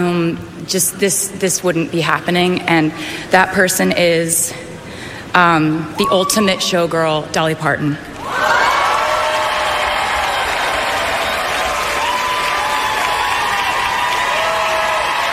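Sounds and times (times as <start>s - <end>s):
speech: 0.0s - 4.7s, 5.3s - 8.6s
audience applause: 8.2s - 15.3s.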